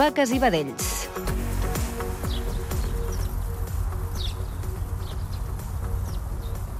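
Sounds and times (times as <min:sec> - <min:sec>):
speech: 0:00.0 - 0:01.4
small birds chirping at a quiet farm: 0:01.7 - 0:06.7.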